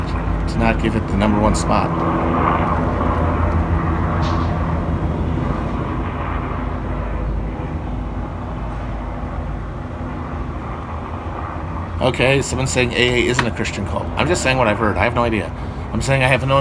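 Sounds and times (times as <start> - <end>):
helicopter flying overhead: 0.0 - 16.5
speech: 0.5 - 3.3, 12.0 - 16.5.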